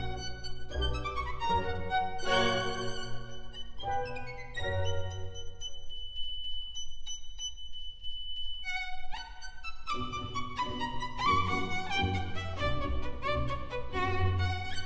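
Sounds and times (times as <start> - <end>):
violin concerto in B minor: 0.0 - 5.6, 8.6 - 14.8.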